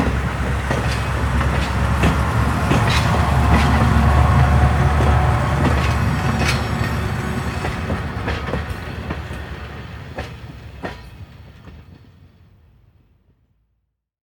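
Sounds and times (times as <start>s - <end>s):
train departing: 0.0s - 13.0s
train whistle: 2.2s - 8.4s.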